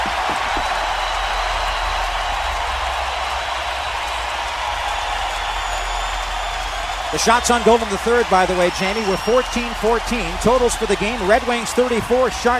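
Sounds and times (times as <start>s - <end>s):
large arena crowd cheering and applauding: 0.0s - 12.5s
speech: 7.1s - 12.5s.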